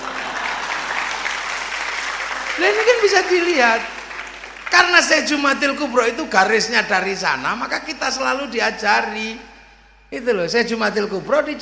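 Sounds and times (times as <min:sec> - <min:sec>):
audience applause during a talk on Islamic history in Java: 0:00.0 - 0:06.1
speech: 0:02.6 - 0:04.0, 0:04.7 - 0:09.5, 0:10.1 - 0:11.6.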